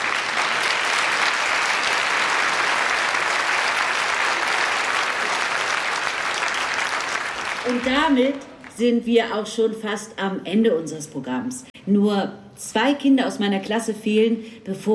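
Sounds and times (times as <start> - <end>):
audience applause: 0.0 - 8.7
speech: 7.7 - 14.9.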